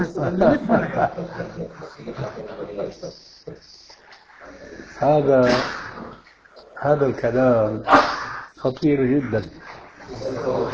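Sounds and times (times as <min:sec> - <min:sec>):
laughter: 0:00.0 - 0:03.4, 0:10.1 - 0:10.7
speech: 0:00.0 - 0:03.4, 0:05.0 - 0:05.8, 0:06.8 - 0:09.6
sneeze: 0:05.4 - 0:06.0, 0:07.8 - 0:08.4.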